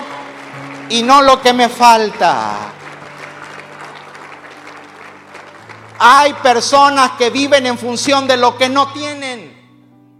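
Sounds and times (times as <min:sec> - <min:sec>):
audience applause: 0:00.0 - 0:07.9
speech: 0:00.9 - 0:02.8, 0:06.0 - 0:09.3.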